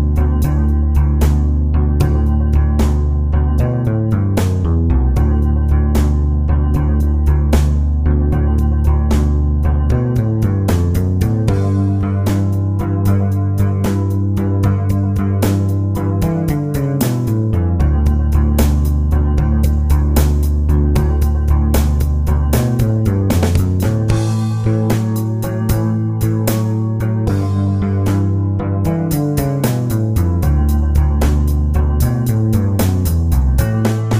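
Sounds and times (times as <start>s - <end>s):
slow 12 bar blues chord progression in D: 0.0s - 34.1s.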